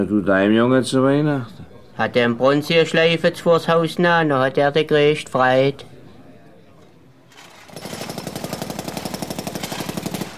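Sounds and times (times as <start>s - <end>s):
speech: 0.0s - 5.9s
construction site jackhammer pounding: 7.3s - 10.3s.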